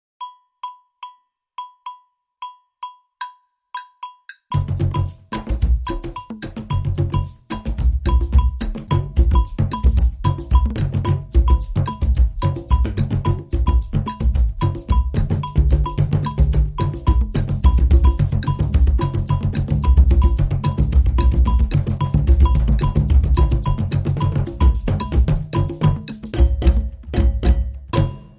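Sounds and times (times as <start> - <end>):
festival drums: 4.5 - 28.3.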